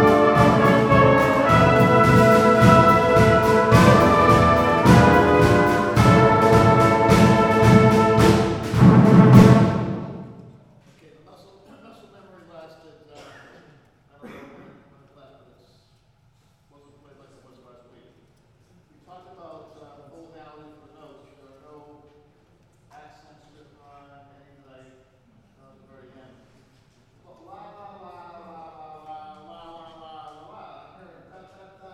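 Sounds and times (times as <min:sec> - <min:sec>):
brass melody: 0:00.0 - 0:10.5.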